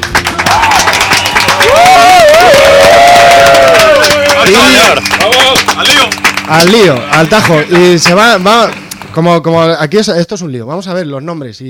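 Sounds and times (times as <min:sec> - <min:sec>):
audience cheering: 0:00.0 - 0:06.4
audience applause: 0:00.0 - 0:09.2
speech: 0:04.5 - 0:05.1, 0:06.0 - 0:11.6.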